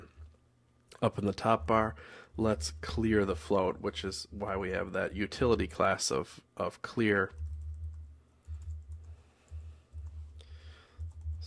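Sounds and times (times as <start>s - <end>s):
speech: 1.0s - 7.4s
computer keyboard typing: 7.3s - 10.4s, 11.0s - 11.4s.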